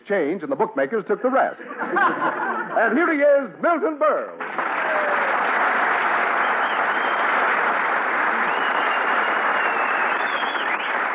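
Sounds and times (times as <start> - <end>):
speech: 0.1 - 5.2
laughter: 1.6 - 3.0
audience whistling: 4.4 - 11.1.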